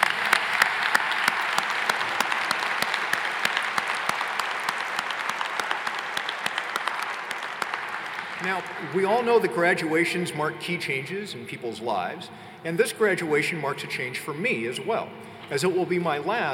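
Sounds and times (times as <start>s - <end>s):
applause from a large audience: 0.0s - 9.5s
speech: 8.5s - 16.5s.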